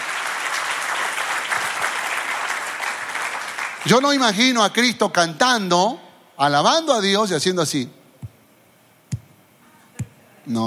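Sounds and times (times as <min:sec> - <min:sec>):
audience applauding: 0:00.0 - 0:04.3
speech: 0:03.8 - 0:08.0, 0:10.5 - 0:10.6.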